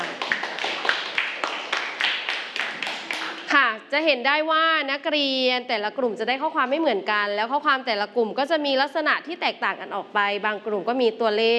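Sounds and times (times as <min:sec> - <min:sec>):
students clapping for themselves: 0:00.0 - 0:03.5
speech: 0:04.0 - 0:11.5.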